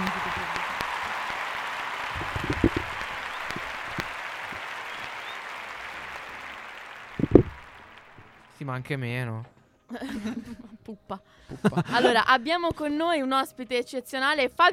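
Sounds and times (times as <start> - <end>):
applause sound effect: 0.0 - 8.9
speech: 8.7 - 14.7
laughter: 9.9 - 12.3.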